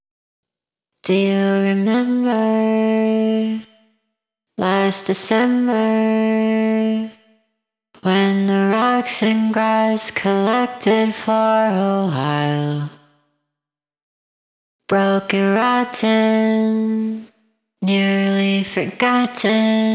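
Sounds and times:
vocals: 1.0s - 3.9s, 4.6s - 7.4s, 8.0s - 13.2s, 14.9s - 19.9s.

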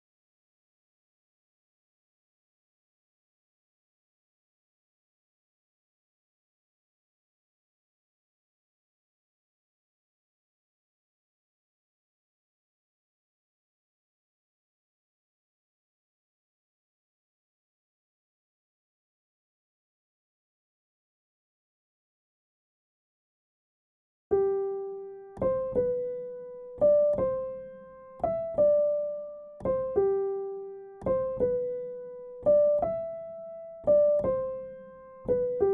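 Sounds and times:
piano: 24.3s - 35.7s.

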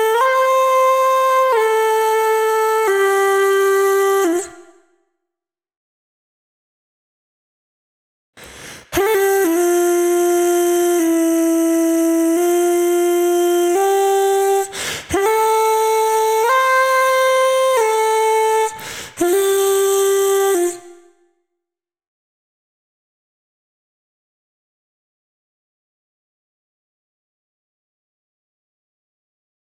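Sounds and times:
vocals: 0.0s - 4.9s, 8.4s - 21.2s.

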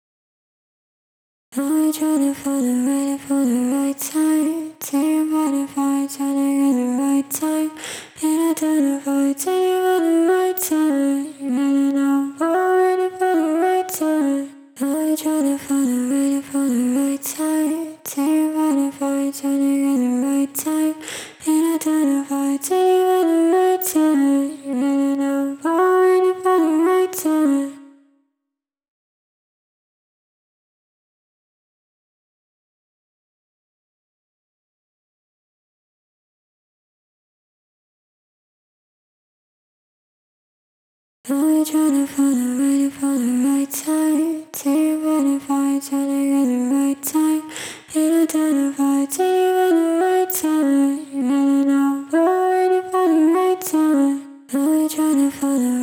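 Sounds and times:
vocals: 1.6s - 28.1s, 41.3s - 55.8s.

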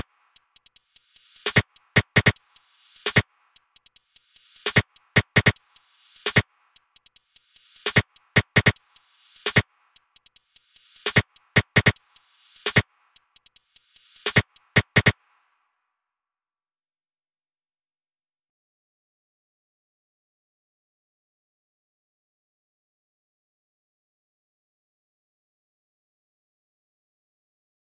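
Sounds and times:
percussion: 0.0s - 15.2s.

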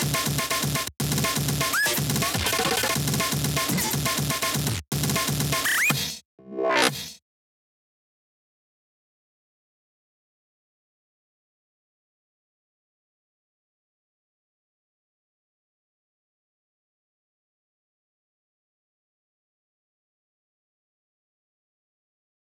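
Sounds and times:
drums: 0.0s - 7.2s.

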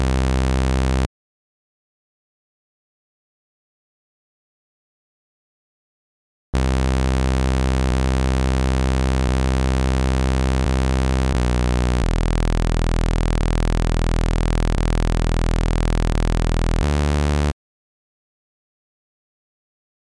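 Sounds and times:
bass: 0.0s - 1.1s, 6.6s - 17.6s.

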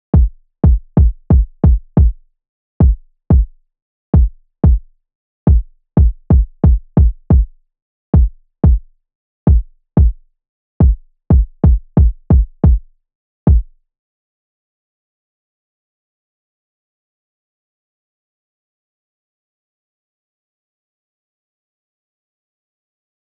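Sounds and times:
kick drum: 0.2s - 2.2s, 2.8s - 3.5s, 4.2s - 4.8s, 5.5s - 7.5s, 8.2s - 8.9s, 9.5s - 10.2s, 10.8s - 12.9s, 13.5s - 13.7s.

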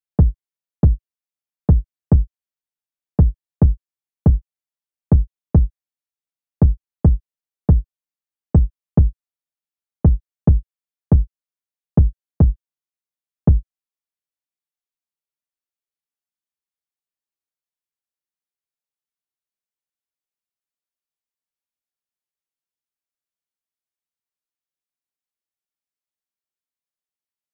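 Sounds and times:
kick drum: 0.2s - 1.0s, 1.7s - 2.3s, 3.2s - 4.4s, 5.1s - 5.7s, 6.6s - 7.9s, 8.6s - 9.2s, 10.0s - 11.3s, 12.0s - 12.6s, 13.5s - 13.7s.

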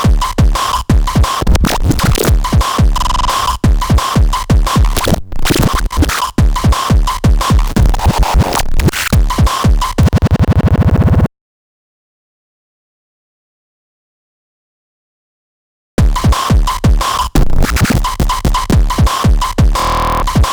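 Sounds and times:
drums: 0.0s - 11.3s, 16.0s - 20.5s.

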